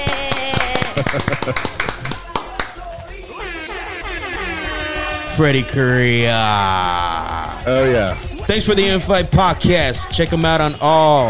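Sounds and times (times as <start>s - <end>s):
laughter: 0.0s - 3.0s, 6.3s - 8.2s
round of applause: 0.0s - 3.0s
speech: 1.1s - 1.9s, 5.4s - 11.2s.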